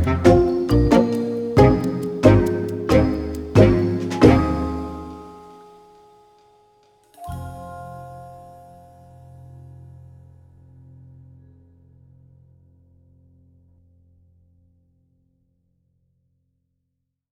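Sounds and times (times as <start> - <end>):
telephone hold music: 0.0 - 5.5.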